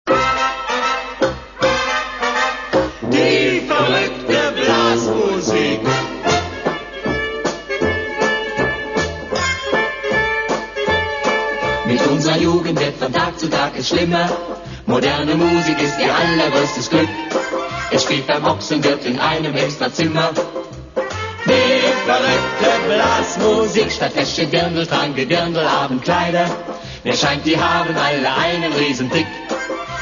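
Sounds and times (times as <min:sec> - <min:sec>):
crazy brass band music: 0:00.1 - 0:30.0.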